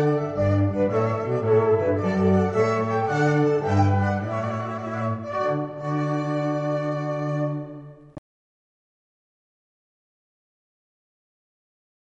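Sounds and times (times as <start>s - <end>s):
trumpet piece: 0.0s - 8.2s.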